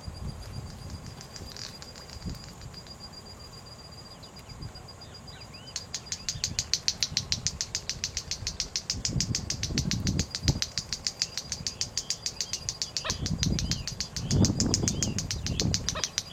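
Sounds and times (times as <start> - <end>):
white-bellied seedeater song: 0.3 - 3.1, 5.4 - 16.3.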